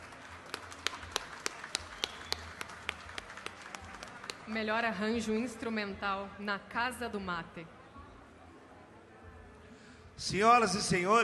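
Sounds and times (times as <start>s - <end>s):
round of applause: 0.0s - 5.5s
speech: 4.5s - 7.8s, 10.2s - 11.2s.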